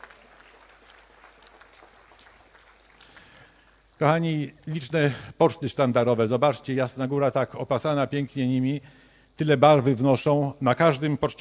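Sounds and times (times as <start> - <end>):
audience applause: 0.0 - 3.8
speech: 4.0 - 11.3.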